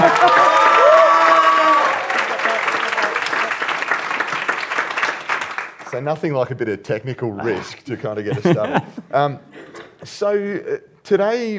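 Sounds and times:
laughter: 0:00.0 - 0:00.7, 0:02.3 - 0:03.7, 0:07.4 - 0:10.0
people whooping: 0:00.0 - 0:03.7
live audience clapping: 0:00.0 - 0:06.5
speech: 0:06.0 - 0:11.5.

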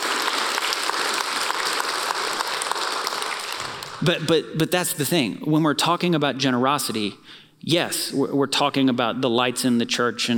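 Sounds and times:
audience applause: 0:00.0 - 0:04.1
speech: 0:04.0 - 0:10.3.

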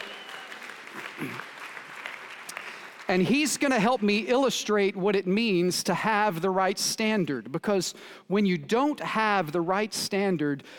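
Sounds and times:
audience clapping for a guest called onto a stage: 0:00.0 - 0:04.4
speech: 0:01.2 - 0:01.5, 0:03.1 - 0:10.7.

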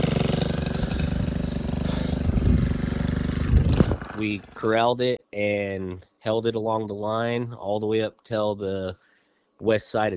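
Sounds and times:
bulldozer digging a fire break: 0:00.0 - 0:04.7
speech: 0:04.2 - 0:09.0, 0:09.6 - 0:10.1.

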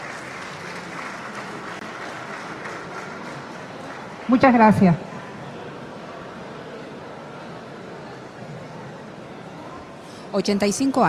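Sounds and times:
audience applause: 0:00.0 - 0:04.6
speech: 0:04.3 - 0:05.1, 0:10.4 - 0:11.0.

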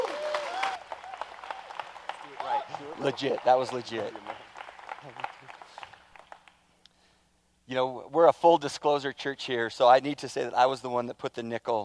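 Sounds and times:
audience applause welcoming a speaker at Journey Church: 0:00.0 - 0:06.6
speech: 0:02.8 - 0:04.4, 0:05.0 - 0:05.3, 0:07.7 - 0:11.8.

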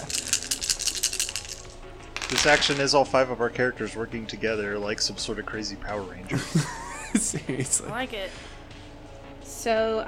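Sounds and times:
dice rolling: 0:00.0 - 0:03.0
speech: 0:02.3 - 0:08.6, 0:09.6 - 0:10.0
laughter: 0:06.3 - 0:08.0.

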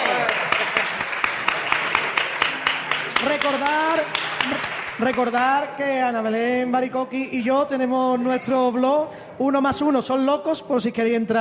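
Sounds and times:
audience applause: 0:00.0 - 0:05.6
speech: 0:03.5 - 0:11.3.

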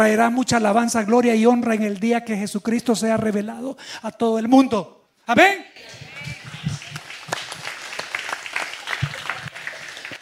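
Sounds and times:
speech: 0:00.0 - 0:06.1
hand clapping: 0:05.8 - 0:10.2.

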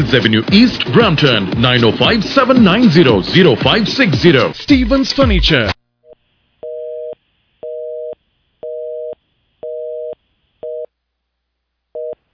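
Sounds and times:
speech: 0:00.0 - 0:05.8
telephone busy tone after a dropped phone-in call: 0:06.6 - 0:10.9.

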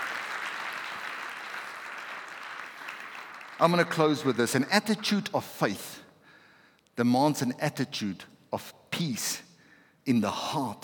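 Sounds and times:
audience clapping: 0:00.0 - 0:05.0
speech: 0:03.6 - 0:06.0, 0:07.0 - 0:09.5, 0:10.1 - 0:10.8.

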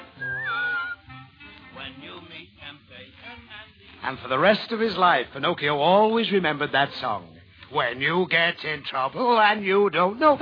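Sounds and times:
person whistling: 0:00.0 - 0:01.2
speech: 0:04.1 - 0:10.3.

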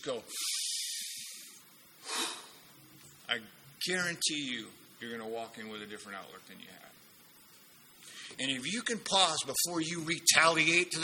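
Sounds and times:
speech: 0:00.0 - 0:00.6, 0:03.3 - 0:07.0, 0:08.3 - 0:11.0
deep breathing for a calming exercise: 0:00.3 - 0:02.6, 0:08.0 - 0:08.4.

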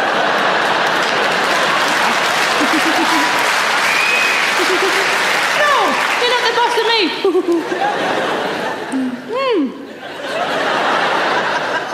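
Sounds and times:
audience clapping at a live comedy show: 0:00.0 - 0:08.8
laughter: 0:00.0 - 0:11.9
speech: 0:07.4 - 0:09.0.

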